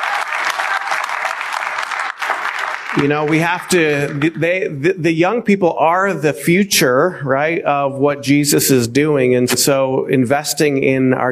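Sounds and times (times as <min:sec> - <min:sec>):
crowd applauding: 0:00.0 - 0:05.0
speech: 0:03.0 - 0:11.3.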